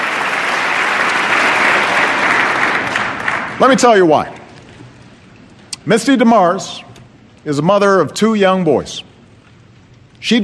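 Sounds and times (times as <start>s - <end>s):
large audience applause: 0.0s - 3.8s
speech: 3.6s - 4.4s, 5.8s - 9.1s, 10.2s - 10.4s.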